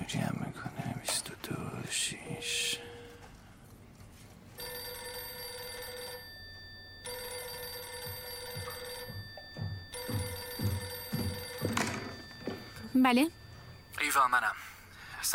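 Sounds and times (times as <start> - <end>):
speech: 0.1 - 0.4, 1.9 - 2.9, 13.0 - 13.4, 14.2 - 14.7
telephone bell ringing for an incoming call: 4.6 - 15.3.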